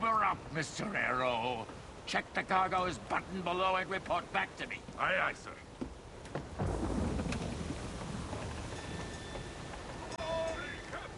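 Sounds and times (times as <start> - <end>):
rain: 0.0 - 11.1
speech: 0.4 - 5.7
thunder: 6.5 - 10.0.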